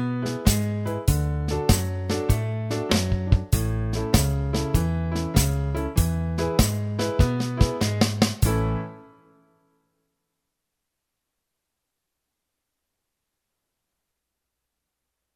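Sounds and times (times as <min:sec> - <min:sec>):
blues shuffle in A: 0:00.0 - 0:08.9.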